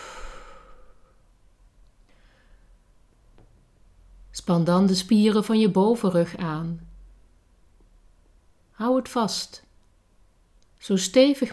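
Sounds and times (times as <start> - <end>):
deep breath in and out during a relaxation exercise: 0.0 - 1.3, 2.1 - 2.8
speech: 4.5 - 6.9, 8.8 - 9.7, 10.8 - 11.5.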